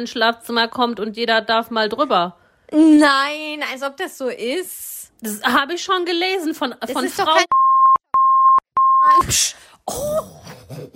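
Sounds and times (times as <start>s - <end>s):
speech: 0.0s - 7.6s, 9.0s - 10.9s
censor bleep over a word: 7.5s - 9.3s.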